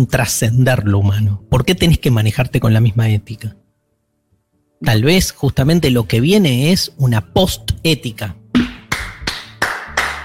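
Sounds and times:
speech: 0.0s - 3.6s, 4.8s - 8.7s
person clapping for themselves: 8.6s - 10.2s.

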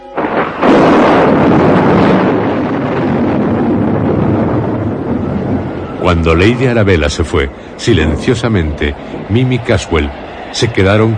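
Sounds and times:
storm bursting with strong wind: 0.0s - 11.1s
speech: 6.1s - 11.1s.

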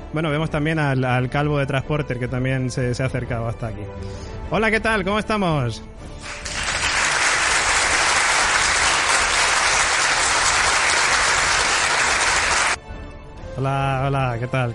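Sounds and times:
speech: 0.1s - 6.6s, 13.6s - 14.7s
canned studio audience applause sound effect: 6.2s - 12.8s.

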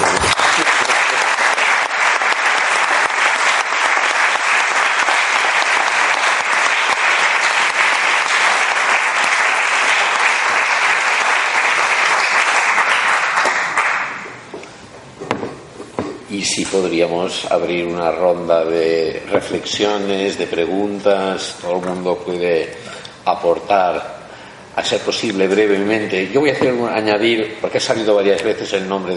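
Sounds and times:
loud audience applause: 0.0s - 14.4s
speech: 16.8s - 24.2s, 24.8s - 29.1s.

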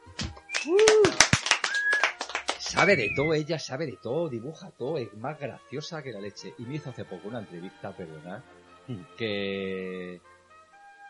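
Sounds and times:
applause: 0.2s - 3.2s
speech: 0.6s - 1.0s, 2.7s - 10.4s.

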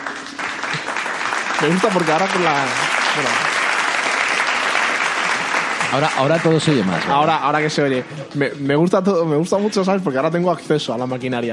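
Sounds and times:
applause: 0.0s - 7.4s
speech: 1.6s - 3.5s, 5.9s - 11.5s.

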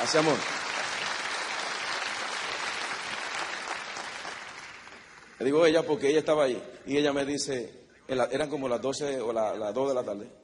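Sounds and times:
speech: 0.0s - 0.7s, 5.4s - 10.4s
audience applause: 0.0s - 5.4s.

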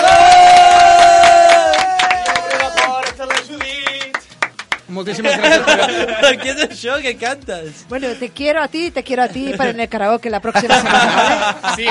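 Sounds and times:
crowd cheering and whooping: 0.0s - 3.0s
loud audience applause: 0.0s - 4.8s
speech: 5.0s - 11.8s
laughter: 5.1s - 6.8s, 9.3s - 9.9s, 10.5s - 11.8s.

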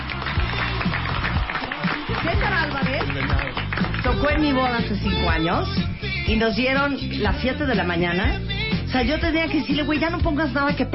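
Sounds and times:
applause: 0.0s - 5.5s
speech: 3.0s - 10.9s.

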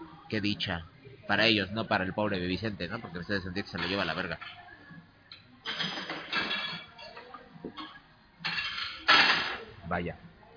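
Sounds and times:
speech: 0.3s - 4.6s, 9.9s - 10.3s
plates being arranged: 3.7s - 4.6s, 5.6s - 9.7s.

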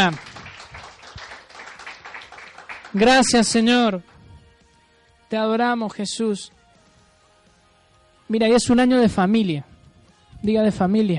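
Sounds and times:
speech: 0.0s - 0.3s, 2.9s - 4.1s, 5.3s - 6.6s, 8.3s - 9.7s, 10.4s - 11.1s
audience clapping: 0.0s - 4.2s.

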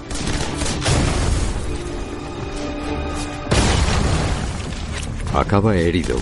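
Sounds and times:
German percussion grenade exploding: 0.0s - 2.0s, 3.5s - 6.1s
speech: 5.4s - 6.1s.

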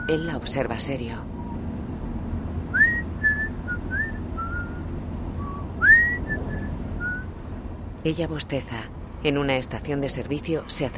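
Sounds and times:
low rumbling hum: 0.0s - 10.9s
speech: 0.1s - 1.4s, 8.0s - 10.9s
person whistling a simple melody: 2.8s - 4.8s, 5.4s - 7.3s.

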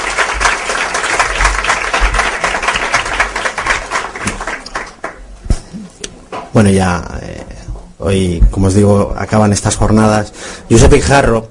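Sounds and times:
audience applause: 0.0s - 5.4s
speech: 6.6s - 7.1s, 8.0s - 11.4s.

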